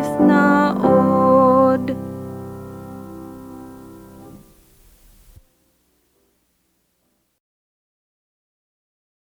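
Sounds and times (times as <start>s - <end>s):
nursery rhyme melody: 0.0s - 4.6s.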